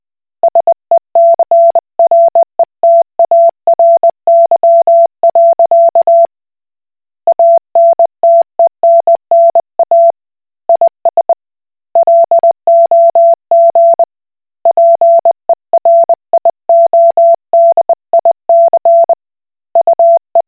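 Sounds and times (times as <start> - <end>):
Koch Morse code beeps: 0.5 - 6.3, 7.3 - 10.1, 12.0 - 14.1, 14.7 - 19.2, 19.8 - 20.4.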